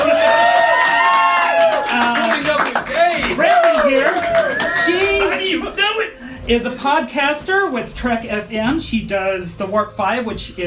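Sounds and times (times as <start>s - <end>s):
crowd applause: 0.0s - 5.7s
speech: 6.5s - 10.6s.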